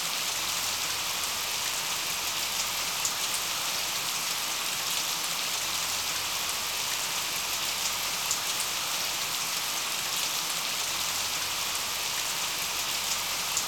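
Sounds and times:
rain: 0.0 - 13.6.

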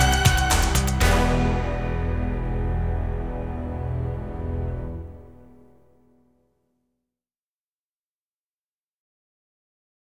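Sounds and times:
cello playing chase music: 0.0 - 5.8.

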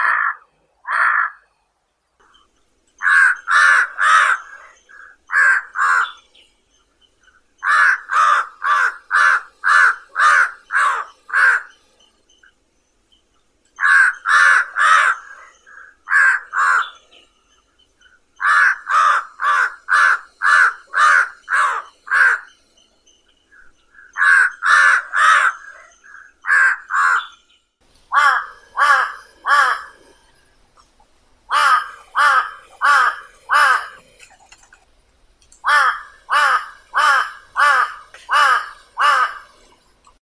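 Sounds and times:
large-billed crow Corvus macrorhynchos: 0.0 - 1.5, 3.0 - 6.2, 7.6 - 11.8, 13.8 - 17.0, 18.4 - 22.6, 24.0 - 27.3, 28.1 - 30.3, 31.5 - 34.0, 35.6 - 39.7.

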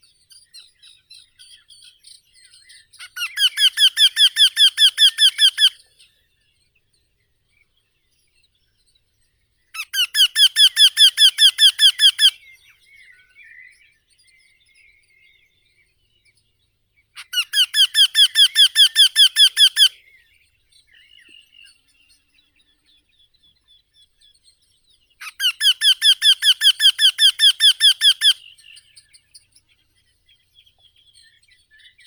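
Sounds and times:
Eurasian wryneck Jynx torquilla calling: 3.2 - 5.8, 9.8 - 12.4, 17.2 - 20.0, 25.2 - 28.8.

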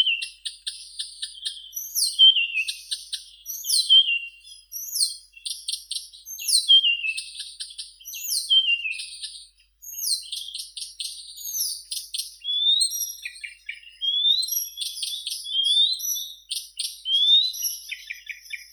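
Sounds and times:
Blyth's reed warbler Acrocephalus dumetorum singing: 0.0 - 18.7.

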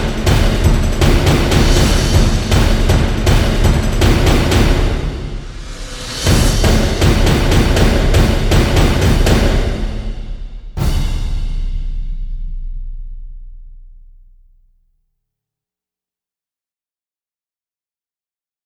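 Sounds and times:
drums: 0.0 - 14.4.

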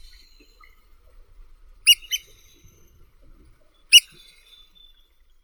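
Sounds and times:
black oystercatcher Haematopus bachmani: 1.9 - 2.3, 3.9 - 4.2.

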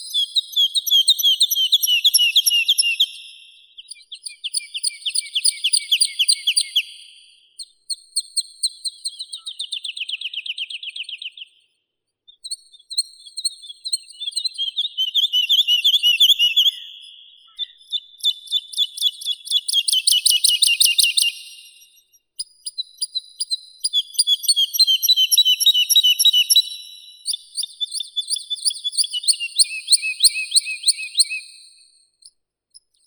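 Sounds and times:
woodlark Lullula arborea singing: 0.0 - 7.1, 13.3 - 31.6.

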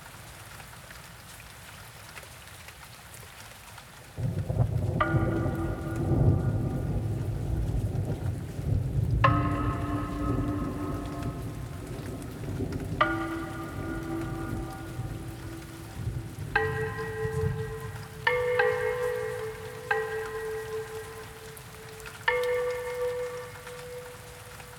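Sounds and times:
thunderstorm: 4.2 - 24.6
Asian bells ringing: 5.0 - 8.0, 9.2 - 24.7.

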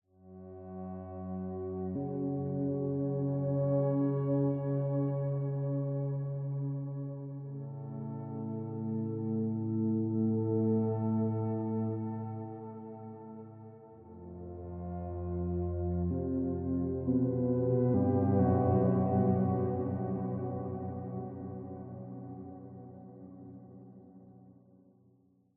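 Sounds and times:
ambient music: 0.3 - 24.6.

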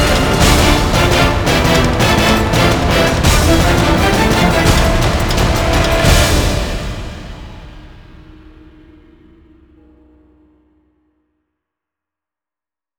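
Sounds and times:
instrumental music: 0.0 - 7.8.

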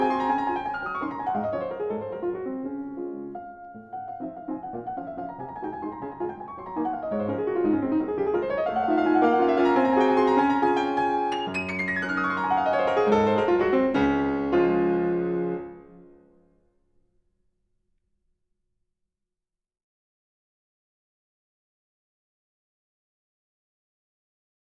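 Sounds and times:
waltz in D flat major: 0.0 - 16.1.

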